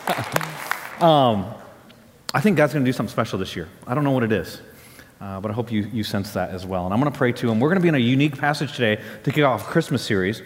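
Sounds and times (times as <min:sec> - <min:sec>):
audience clapping: 0:00.0 - 0:01.5
speech: 0:00.1 - 0:01.6, 0:02.3 - 0:10.4.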